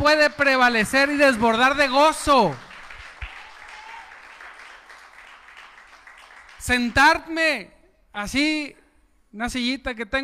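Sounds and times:
speech: 0.0 - 2.6, 6.6 - 10.2
audience applause: 0.4 - 6.9.

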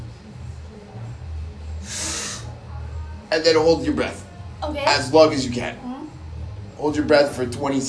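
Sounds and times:
steady low hum: 0.0 - 7.8
person inhaling a puff of cannabis smoke: 1.8 - 2.6
speech: 3.3 - 5.9, 6.8 - 7.8.

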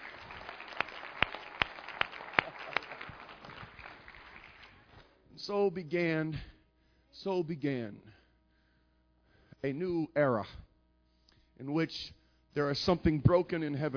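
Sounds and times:
audience clapping hands: 0.0 - 5.0
speech: 5.5 - 6.5, 7.2 - 8.1, 9.6 - 10.7, 11.6 - 13.9.

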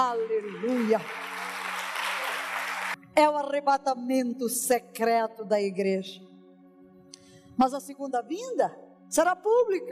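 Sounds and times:
speech: 0.0 - 1.2, 3.2 - 6.3, 7.6 - 9.9
audience applause: 0.1 - 3.0.

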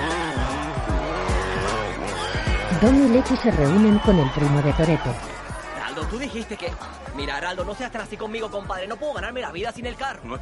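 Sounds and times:
motorcycle engine revving: 0.0 - 3.3
motorcycle tires squealing as a motorcyclist spins: 0.0 - 5.2
speech: 2.8 - 5.4, 6.1 - 10.3.

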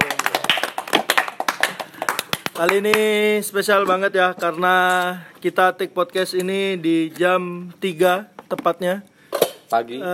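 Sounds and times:
hand clapping: 0.0 - 3.2
speech: 2.6 - 9.1, 9.7 - 10.1.

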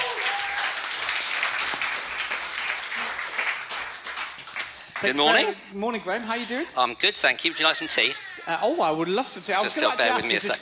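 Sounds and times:
audience applause: 0.0 - 5.5
speech: 5.0 - 10.5.

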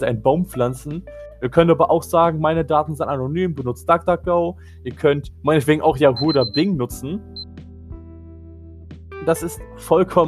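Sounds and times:
speech: 0.0 - 7.4, 9.2 - 10.2
timer ringing: 6.2 - 6.7.

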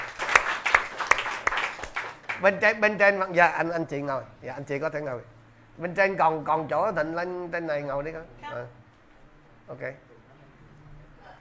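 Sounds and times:
audience applause: 0.0 - 2.4
speech: 2.4 - 8.8, 9.7 - 10.1.

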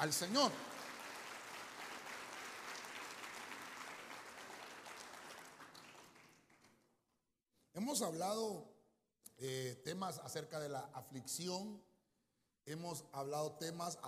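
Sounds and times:
speech: 0.0 - 0.8, 7.8 - 8.7, 9.3 - 11.9, 12.6 - 14.0
audience applause: 0.0 - 6.8.

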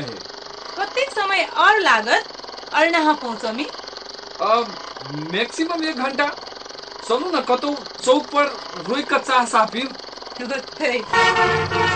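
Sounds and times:
speech: 1.3 - 3.8, 4.4 - 6.4, 7.1 - 11.8
loud vehicle horn honking on highway: 11.0 - 11.9.

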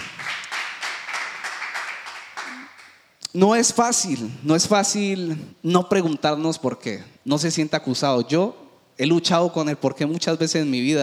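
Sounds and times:
crowd rhythmic clapping: 0.0 - 3.1
speech: 3.3 - 11.0.

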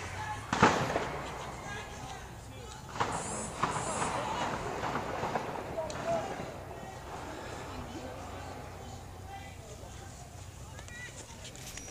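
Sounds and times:
gunshots: 0.0 - 2.1, 2.9 - 7.4
noisy commotion: 0.0 - 11.8.

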